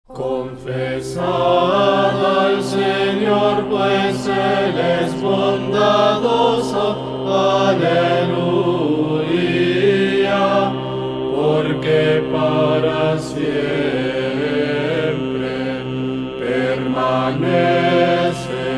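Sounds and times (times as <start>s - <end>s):
chant in Spanish tone: 0.1s - 18.7s.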